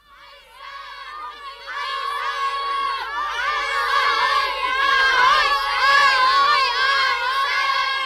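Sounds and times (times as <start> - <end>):
children shouting during a snowball fight: 0.1 - 8.0.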